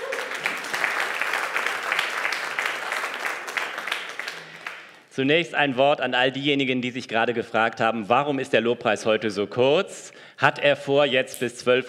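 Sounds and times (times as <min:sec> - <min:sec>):
audience applause: 0:00.0 - 0:05.0
speech: 0:05.2 - 0:11.8.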